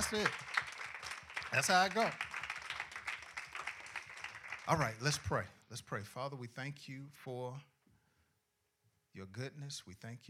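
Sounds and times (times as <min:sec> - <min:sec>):
speech: 0:00.0 - 0:00.5, 0:01.5 - 0:02.2, 0:04.7 - 0:07.7, 0:09.2 - 0:10.2
audience clapping hands in rhythm: 0:00.0 - 0:05.4.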